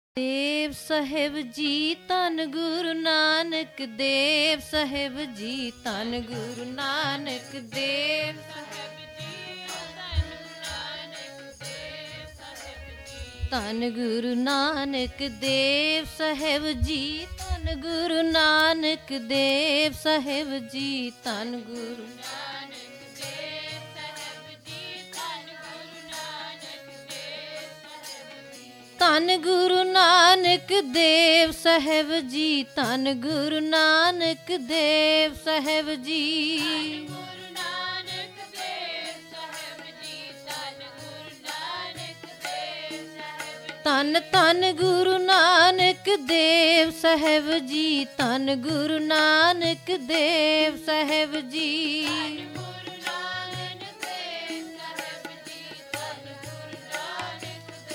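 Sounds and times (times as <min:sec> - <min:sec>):
kirtan devotional chanting: 0:00.2 - 0:57.9.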